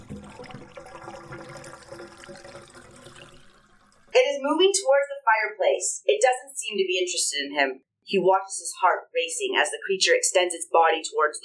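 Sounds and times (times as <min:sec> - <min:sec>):
wet bubbling gurgle: 0:00.0 - 0:04.2
speech: 0:04.4 - 0:11.4.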